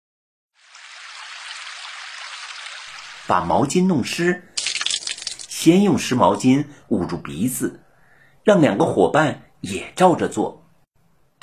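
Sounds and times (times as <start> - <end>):
flowing stream water: 0.6 - 3.3
speech: 3.3 - 4.5, 5.6 - 7.8, 8.4 - 10.6.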